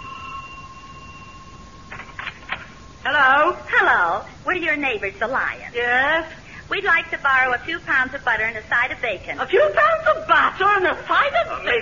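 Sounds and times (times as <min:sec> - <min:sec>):
doorbell ringing: 0:00.0 - 0:03.0
speech: 0:03.0 - 0:11.8.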